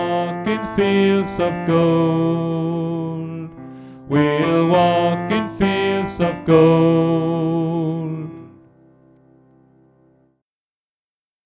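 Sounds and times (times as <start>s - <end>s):
tenor singing: 0.0s - 8.7s.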